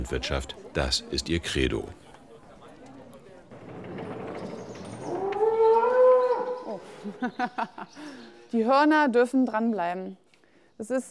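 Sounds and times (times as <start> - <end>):
speech: 0.0 - 2.0, 7.0 - 10.2, 10.8 - 11.0
low rumbling barn noise: 3.5 - 6.9
agitated young cow mooing: 5.0 - 6.8
laughter: 6.8 - 8.3.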